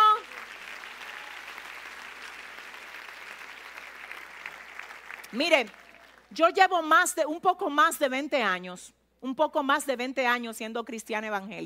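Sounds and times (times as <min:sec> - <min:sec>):
audience applause: 0:00.0 - 0:06.3
speech: 0:05.3 - 0:11.6.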